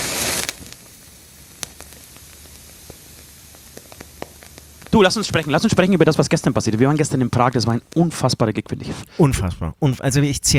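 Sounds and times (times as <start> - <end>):
lighter flame lighting a cigarette: 0.0 - 5.9
cigarette crackling as it catches: 0.0 - 10.5
speech: 5.0 - 10.5.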